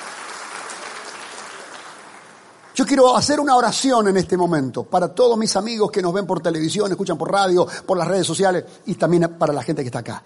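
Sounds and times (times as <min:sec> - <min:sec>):
crowd applauding: 0:00.0 - 0:03.0
speech: 0:02.8 - 0:10.2.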